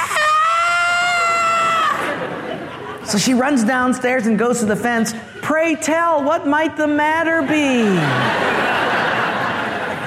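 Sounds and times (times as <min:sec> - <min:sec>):
blood-curdling woman's scream: 0:00.0 - 0:02.2
laughter: 0:01.2 - 0:03.8, 0:07.2 - 0:10.0
speech: 0:03.1 - 0:08.4.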